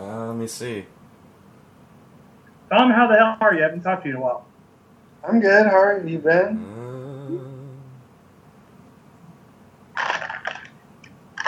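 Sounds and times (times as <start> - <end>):
speech: 0.4 - 1.0, 2.7 - 4.5, 5.2 - 7.5
person munching licorice candy: 10.0 - 10.8.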